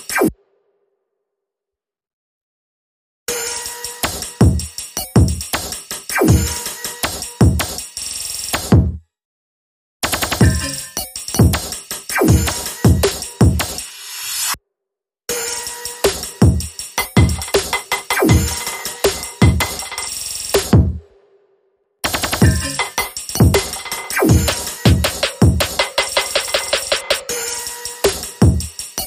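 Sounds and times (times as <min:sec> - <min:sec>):
simple drums playing: 0:04.2 - 0:05.7, 0:06.3 - 0:06.6, 0:07.4 - 0:07.7, 0:10.0 - 0:10.7, 0:11.4 - 0:13.7, 0:16.1 - 0:21.0, 0:22.0 - 0:27.3, 0:28.0 - 0:29.0.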